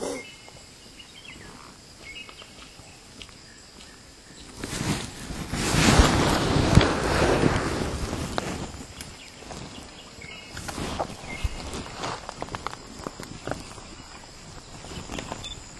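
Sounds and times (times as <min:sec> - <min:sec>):
wildlife sanctuary soundscape in Kerala India: 0:00.0 - 0:15.7.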